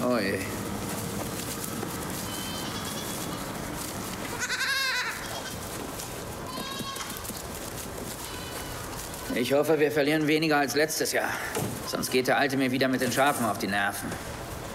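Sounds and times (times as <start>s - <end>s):
young goats bleating: 0.5s - 9.4s
speech: 9.4s - 14.7s.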